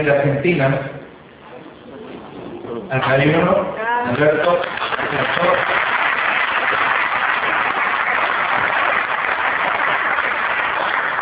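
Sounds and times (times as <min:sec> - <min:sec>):
speech: 0:00.0 - 0:01.0, 0:02.9 - 0:05.8
congregation of fellow believers applauding: 0:04.1 - 0:11.2.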